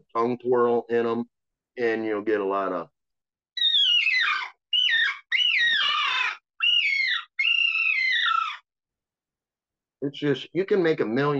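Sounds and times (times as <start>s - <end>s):
speech: 0.1s - 3.0s, 10.0s - 11.3s
imitated bird call: 3.6s - 8.7s.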